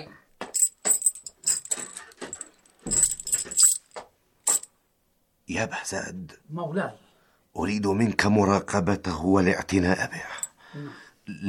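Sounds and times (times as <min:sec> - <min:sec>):
door being locked with keys: 0:00.6 - 0:04.7
speech: 0:05.5 - 0:07.0, 0:07.6 - 0:11.4.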